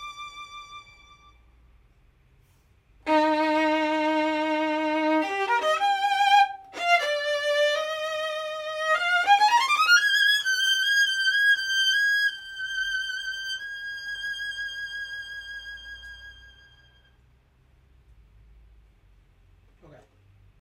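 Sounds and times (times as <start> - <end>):
professional violin playing: 0.0 - 1.6, 3.0 - 17.2.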